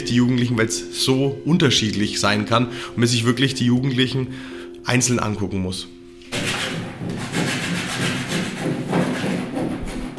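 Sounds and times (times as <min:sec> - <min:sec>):
speech: 0:00.0 - 0:06.0
wood sawn and sanded in a monastery workshop: 0:06.3 - 0:10.1.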